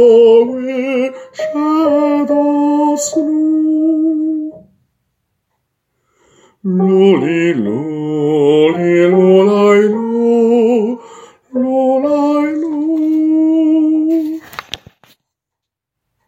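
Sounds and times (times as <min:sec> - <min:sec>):
soprano voice: 0:00.0 - 0:04.7, 0:06.6 - 0:14.5.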